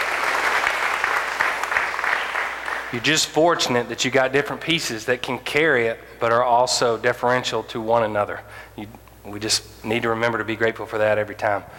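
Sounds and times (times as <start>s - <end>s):
applause: 0.0s - 3.4s
speech: 2.9s - 11.7s.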